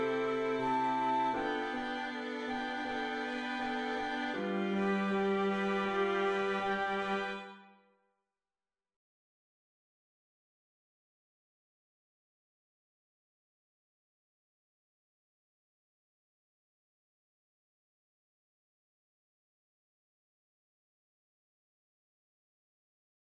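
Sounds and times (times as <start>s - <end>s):
classical backing track with solo: 0.0s - 7.7s.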